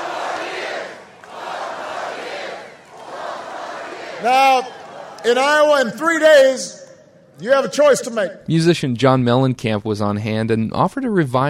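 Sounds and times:
crowd of supporters cheering at rally: 0.0s - 8.4s
speech: 4.2s - 6.8s, 7.4s - 11.4s.

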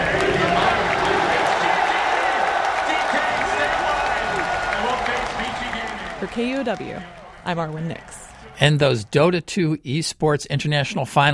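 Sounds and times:
scattered clapping: 0.0s - 8.5s
large arena crowd cheering and chanting: 0.0s - 9.2s
speech: 6.4s - 8.0s, 8.6s - 11.3s.

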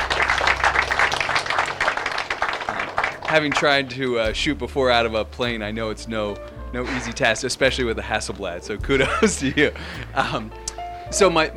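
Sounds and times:
laughter: 0.0s - 3.9s, 6.8s - 7.4s, 8.8s - 10.5s
audience applause: 0.0s - 4.1s
speech: 3.3s - 11.5s.

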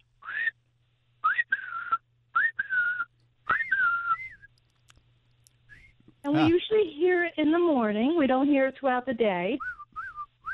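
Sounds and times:
low steady hum: 0.0s - 10.5s
person whistling an imitation of a bird call: 0.2s - 0.5s, 1.2s - 4.5s, 9.6s - 10.5s
speech: 6.3s - 9.7s.

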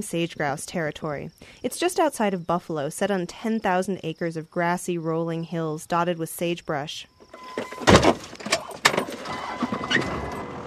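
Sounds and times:
speech: 0.0s - 8.2s
car jolting and rattling on a bumpy two-track Wyoming ranch road: 7.3s - 10.6s.

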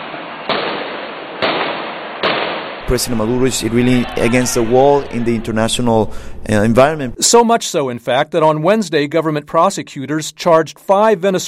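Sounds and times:
gunshots from security forces shooting at student protesters in Caracas: 0.0s - 5.2s
speech: 2.9s - 11.4s.

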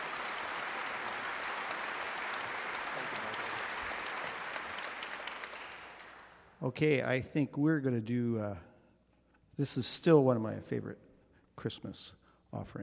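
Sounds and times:
audience applause after a musical arrangement at a Christmas concert: 0.0s - 6.5s
speech: 6.6s - 8.7s, 9.6s - 12.8s.

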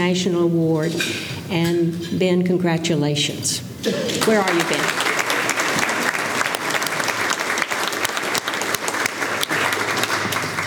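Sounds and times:
speech: 0.0s - 5.0s
crowd applauding: 4.1s - 10.6s.

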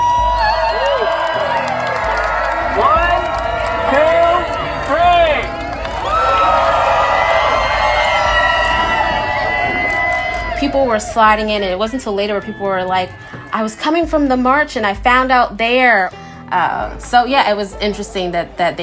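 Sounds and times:
crowd cheering loudly: 0.0s - 13.8s
speech: 10.9s - 18.8s.

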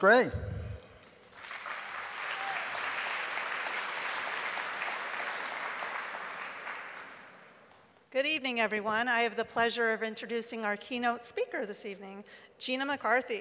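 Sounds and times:
speech: 0.0s - 0.4s, 8.4s - 13.4s
audience applause: 1.2s - 7.6s.

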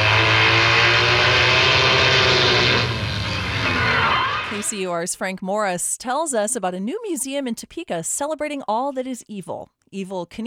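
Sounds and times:
motorbike engine roaring as it speeds off: 0.0s - 4.7s
speech: 4.7s - 10.4s.

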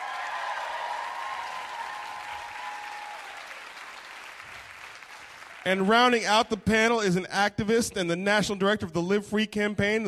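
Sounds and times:
audience applause: 0.0s - 5.8s
speech: 5.6s - 10.0s.

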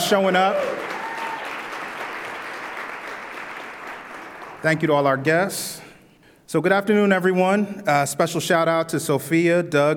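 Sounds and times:
audience applause: 0.0s - 4.9s
speech: 0.1s - 0.7s, 4.6s - 5.8s, 6.5s - 9.9s.

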